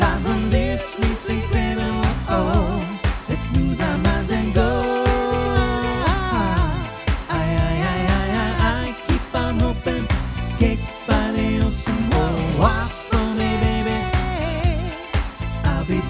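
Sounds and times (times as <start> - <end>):
vocal mix: 0.0 - 16.0.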